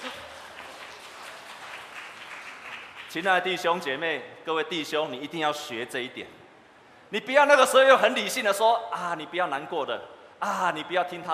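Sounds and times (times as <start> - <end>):
audience applause: 0.0 - 3.3
speech: 3.1 - 6.4, 7.1 - 11.3.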